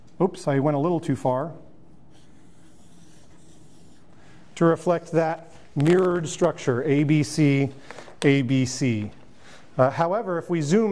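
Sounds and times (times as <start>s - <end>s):
speech: 0.2s - 1.6s, 4.6s - 9.2s, 9.8s - 10.9s
scratchy rubbing of a circle being drawn: 2.1s - 4.1s.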